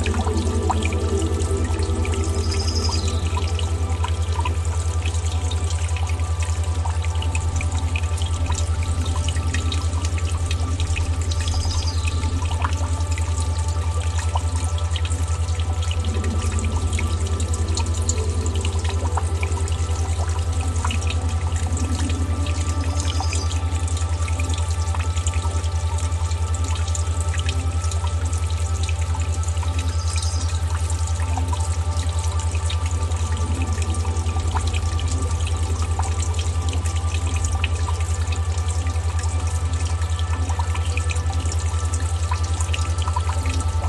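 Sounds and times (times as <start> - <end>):
brook rushing water: 0.0 - 43.8
relaxing music with deep drone and sustained tones: 0.0 - 43.8
faint bright chirps: 1.8 - 3.7.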